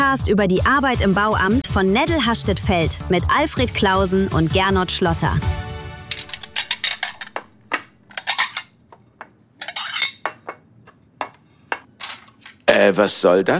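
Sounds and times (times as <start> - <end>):
speech: 0.1 - 5.6, 12.8 - 13.5
dishes and cutlery clattering: 6.1 - 8.8, 9.6 - 10.6, 11.2 - 12.7.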